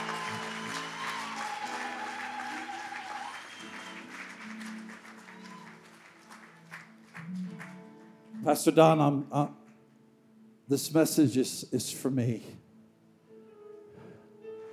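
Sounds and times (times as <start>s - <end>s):
audience clapping in praise: 0.0s - 9.8s
speech: 8.4s - 9.6s, 10.7s - 12.6s.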